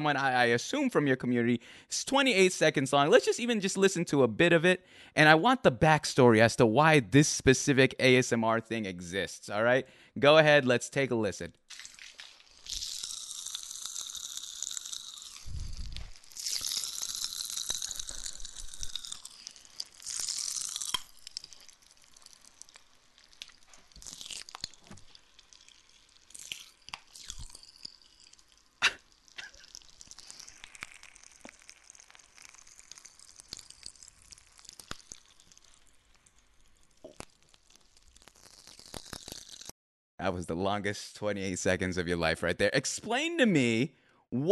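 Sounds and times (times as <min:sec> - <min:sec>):
speech: 0:00.0 - 0:11.9, 0:40.4 - 0:44.5
Pop Rocks candy crackling: 0:11.7 - 0:39.7.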